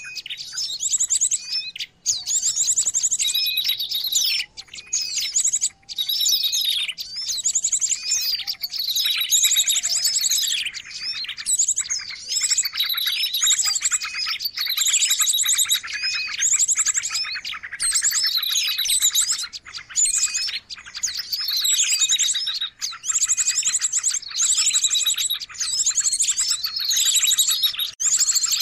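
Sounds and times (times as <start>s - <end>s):
birds chirping chorus: 0.0s - 28.6s.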